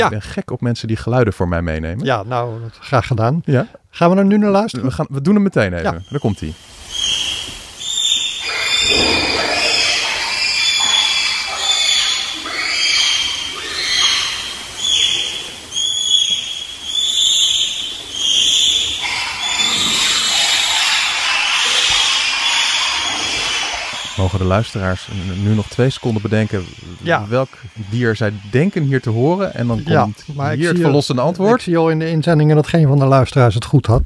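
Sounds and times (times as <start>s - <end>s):
speech: 0.0s - 6.7s, 24.2s - 34.0s
bonobo calls: 6.8s - 31.6s.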